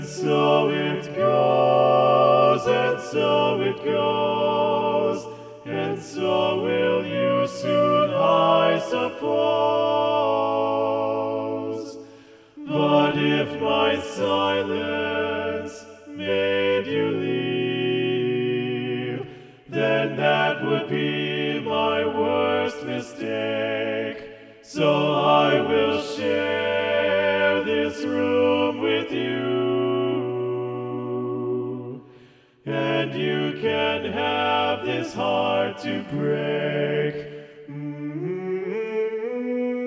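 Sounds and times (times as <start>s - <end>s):
chorale: 0.0s - 39.8s.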